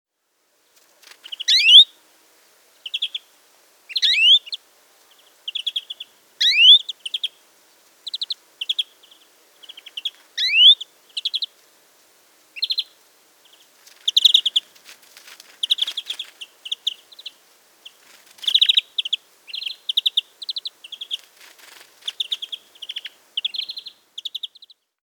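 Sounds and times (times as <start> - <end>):
rustling noise: 0.5 - 1.4, 13.6 - 16.4, 17.9 - 18.7, 21.1 - 22.3
European greenfinch calls: 1.2 - 1.9, 3.9 - 4.6, 5.2 - 7.4, 8.0 - 11.5, 12.6 - 14.7, 15.6 - 24.8.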